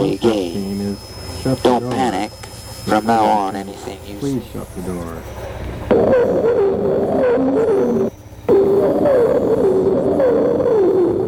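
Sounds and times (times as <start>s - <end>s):
speech: 0.0s - 2.1s, 3.0s - 8.1s
bird song: 0.0s - 10.2s.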